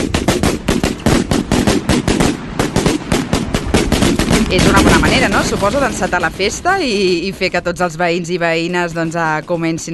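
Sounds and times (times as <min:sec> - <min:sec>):
string of firecrackers exploding (traca): 0:00.0 - 0:06.8
speech: 0:04.5 - 0:09.9.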